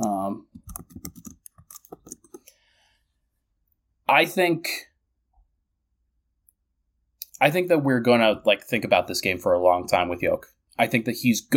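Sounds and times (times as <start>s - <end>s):
typing on a computer keyboard: 0.0s - 2.4s
speech: 4.1s - 4.9s, 7.4s - 11.5s.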